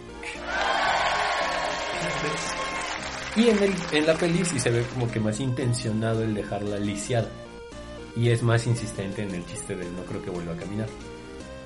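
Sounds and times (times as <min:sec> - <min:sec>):
applause: 0:00.4 - 0:05.2
speech: 0:03.4 - 0:07.5, 0:08.2 - 0:11.2.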